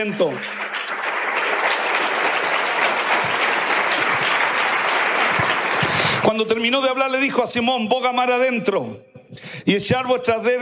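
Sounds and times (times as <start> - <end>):
speech: 0.0 - 0.6, 6.2 - 10.5
audience applause: 0.0 - 6.6.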